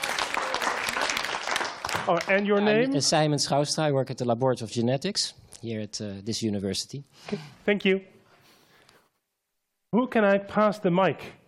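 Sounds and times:
audience applause: 0:00.0 - 0:02.8
speech: 0:02.1 - 0:08.2, 0:09.9 - 0:11.4.

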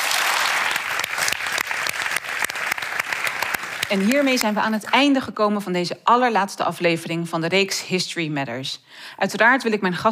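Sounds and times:
audience applause: 0:00.0 - 0:04.8
speech: 0:03.9 - 0:10.0.

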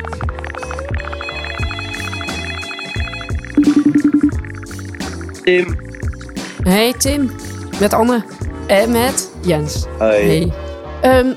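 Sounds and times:
telephone ringing on an outgoing call: 0:01.3 - 0:04.4
speech: 0:05.5 - 0:05.8, 0:06.6 - 0:11.3.

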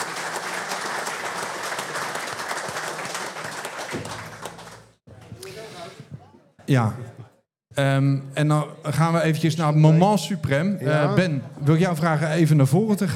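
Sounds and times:
audience applause: 0:00.0 - 0:05.0
speech: 0:06.7 - 0:07.1, 0:07.8 - 0:13.1.

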